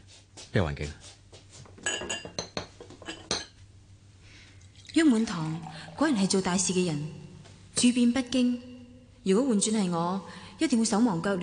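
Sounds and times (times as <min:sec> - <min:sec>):
speech: 0:00.5 - 0:01.1, 0:05.1 - 0:07.2, 0:07.8 - 0:11.4
spoon clinking against a ceramic cup while stirring coffee: 0:01.8 - 0:03.6.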